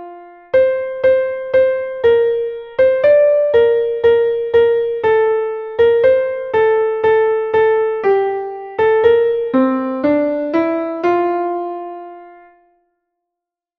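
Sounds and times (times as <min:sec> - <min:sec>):
canon played on piano: 0:00.0 - 0:12.8.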